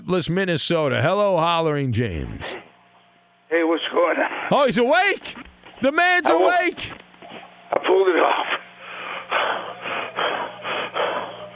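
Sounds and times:
speech: 0.1 - 2.6, 3.5 - 7.0, 8.0 - 8.6
heavy rapid breathing of someone out of breath: 8.8 - 11.5.

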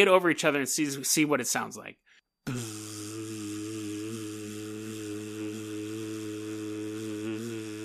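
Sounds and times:
speech: 0.0 - 2.7
person imitating a buzzing sound with their voice: 2.5 - 7.8.

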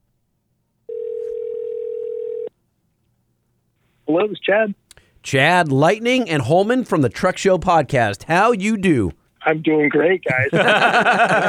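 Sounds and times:
telephone dial tone of an outgoing call: 0.9 - 2.5
speech: 4.1 - 11.4
laughter: 10.2 - 11.4.

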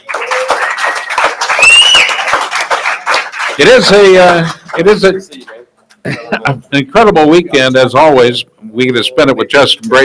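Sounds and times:
audience applause: 0.0 - 5.2
speech: 3.6 - 10.0
laughter: 6.0 - 6.7.

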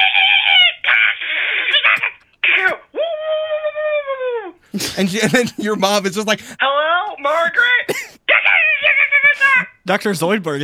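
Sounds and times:
voice imitating shrieking monkeys: 0.0 - 5.4, 8.3 - 9.8
laughter: 4.7 - 6.6
speech: 4.8 - 8.0, 9.9 - 10.6.

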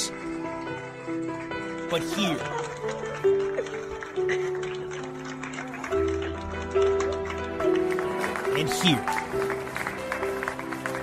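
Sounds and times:
people cheering and clapping: 0.0 - 11.0
speech: 1.9 - 4.7, 8.6 - 9.2.

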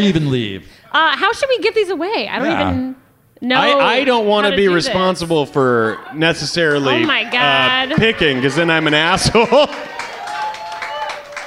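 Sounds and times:
speech: 0.0 - 10.0
laughter: 4.3 - 10.6
audience members clapping: 6.6 - 11.4.

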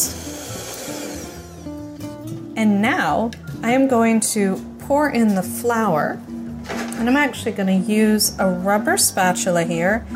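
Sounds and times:
electric mixer beating egg yolk and sugar mixture: 0.0 - 1.7
speech: 2.6 - 6.3, 7.0 - 10.1.

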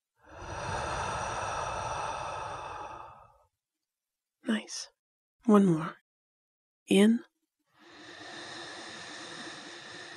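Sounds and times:
deep breath out through the mouth: 0.2 - 3.4, 7.8 - 10.1
speech: 4.7 - 6.0, 6.9 - 7.3.

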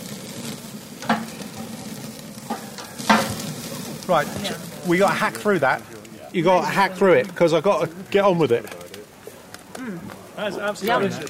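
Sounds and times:
thick piece of meat searing in a pan: 0.0 - 8.3
speech: 4.1 - 8.8, 10.4 - 11.2.

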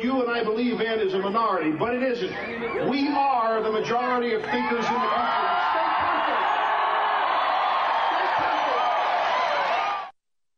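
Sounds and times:
speech: 0.0 - 5.5
large crowd cheering: 4.1 - 10.2
crowd whoops: 4.5 - 10.1.

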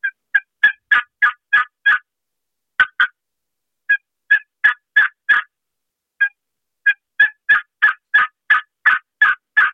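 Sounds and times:
turkey call yelping in slow steady turkey rhythm: 0.0 - 2.0, 2.8 - 3.1, 3.9 - 5.5, 6.2 - 9.7.

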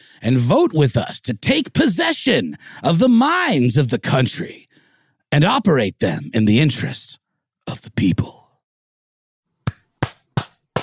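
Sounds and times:
speech: 0.2 - 4.7, 5.3 - 8.4
sharp hand claps: 9.6 - 10.8.

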